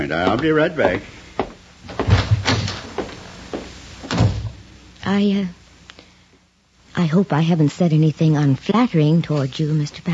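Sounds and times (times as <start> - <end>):
speech: 0.0 - 1.2, 5.1 - 5.6, 7.0 - 10.1
wooden door thumps and knocks: 1.9 - 3.1.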